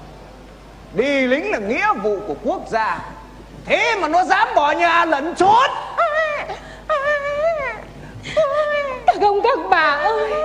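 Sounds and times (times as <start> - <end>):
speech: 0.9 - 6.7, 9.2 - 10.4
small child crying: 5.8 - 9.3.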